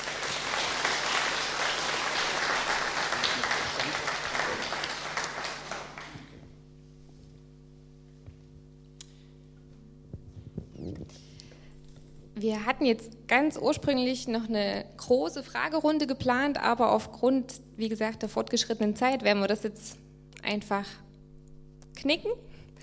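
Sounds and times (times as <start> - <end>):
audience applause: 0.0 - 6.5
low steady hum: 0.0 - 22.8
speech: 12.4 - 21.0, 22.0 - 22.5.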